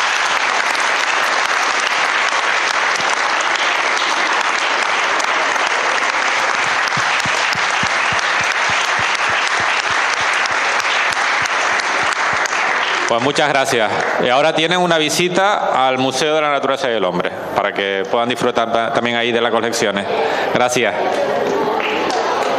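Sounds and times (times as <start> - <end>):
large audience applause: 0.0 - 14.4, 21.4 - 22.5
speech: 13.2 - 21.6.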